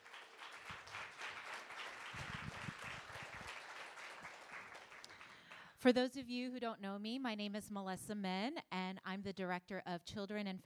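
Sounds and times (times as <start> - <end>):
audience applause: 0.0 - 5.6
speech: 5.8 - 10.6.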